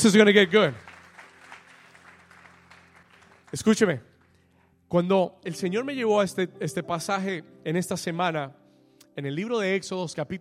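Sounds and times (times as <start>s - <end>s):
speech: 0.0s - 0.9s, 3.5s - 4.1s, 4.9s - 8.6s, 9.2s - 10.4s
crowd applause: 0.0s - 4.4s.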